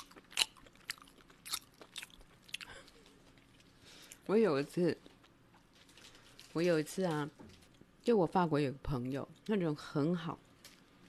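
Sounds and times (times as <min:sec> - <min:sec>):
loud open-mouthed chewing while eating: 0:00.0 - 0:04.2
speech: 0:04.3 - 0:05.1, 0:06.6 - 0:10.5.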